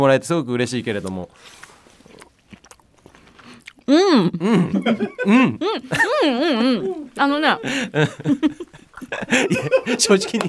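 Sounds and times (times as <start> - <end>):
speech: 0.0 - 1.7, 3.9 - 10.4
chewing pressure-cooked matsutake mushroom: 1.0 - 4.4
laughter: 4.4 - 10.4.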